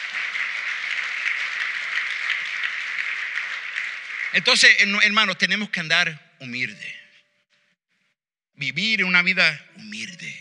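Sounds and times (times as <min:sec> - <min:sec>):
audience applause: 0:00.0 - 0:05.5
speech: 0:04.3 - 0:07.0, 0:08.6 - 0:10.3.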